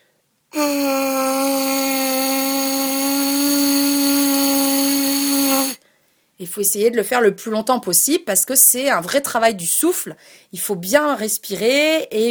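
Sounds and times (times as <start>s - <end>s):
lip buzzing through a brass mouthpiece: 0.8s - 5.8s
speech: 6.4s - 12.2s.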